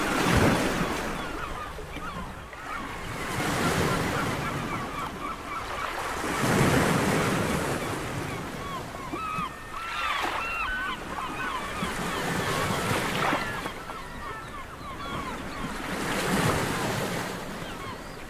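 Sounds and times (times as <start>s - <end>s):
ocean: 0.0s - 18.2s
seagulls: 0.0s - 18.2s.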